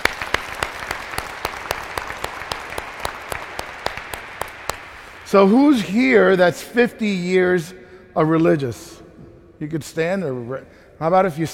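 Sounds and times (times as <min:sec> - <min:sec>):
audience applause: 0:00.0 - 0:05.3
speech: 0:05.3 - 0:09.0, 0:09.6 - 0:11.5.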